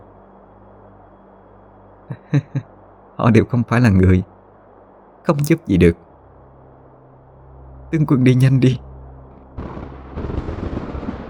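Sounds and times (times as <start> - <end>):
laughter: 2.1 - 2.6
speech: 2.1 - 4.3, 5.2 - 6.1, 7.9 - 8.9
loud rumbling thunder: 9.5 - 11.2.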